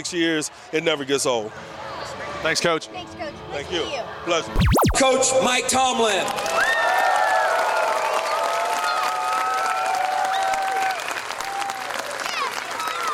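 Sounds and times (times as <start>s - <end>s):
speech: 0.0s - 6.7s
whoops and cheers: 6.4s - 12.1s
large crowd applause: 6.5s - 13.1s.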